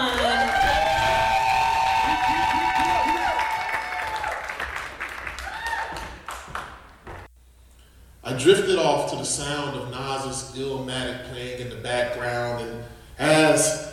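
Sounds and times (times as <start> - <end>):
audience clapping: 0.0 - 7.3
speech: 8.4 - 13.8.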